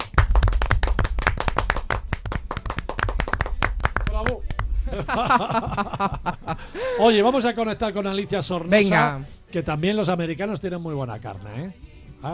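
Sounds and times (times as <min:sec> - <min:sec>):
studio applause: 0:00.0 - 0:05.8
speech: 0:04.2 - 0:12.3
laughter: 0:04.8 - 0:07.3.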